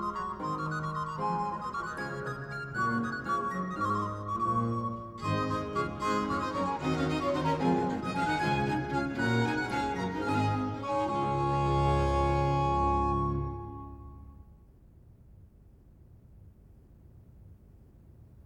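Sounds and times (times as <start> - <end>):
instrumental Christmas carols: 0.0 - 14.5.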